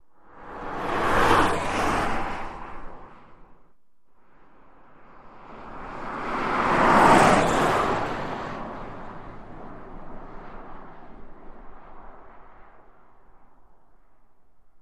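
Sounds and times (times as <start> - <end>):
car passing fast followed by another car: 0.2 - 13.6.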